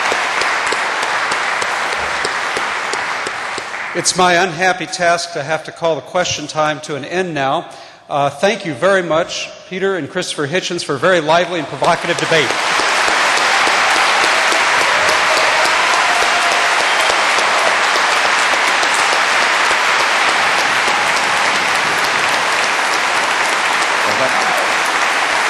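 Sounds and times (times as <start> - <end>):
audience applause: 0.0 - 4.9, 11.3 - 25.4
speech: 4.0 - 12.8.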